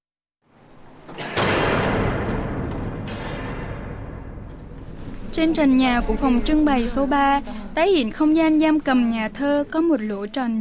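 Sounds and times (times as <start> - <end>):
heavy iron door being shoved open: 0.8 - 7.7
speech: 5.4 - 10.6.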